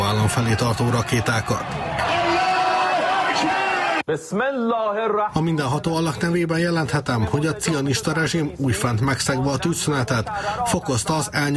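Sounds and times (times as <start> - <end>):
celebrating street crowd cheering in Tehran: 0.0 - 4.1
speech: 0.1 - 2.2, 3.4 - 11.5.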